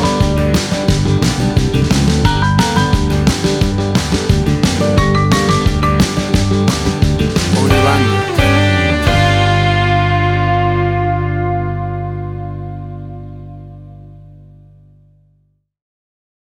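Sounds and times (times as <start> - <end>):
country shuffle rodeo music from a jukebox: 0.0 - 14.4.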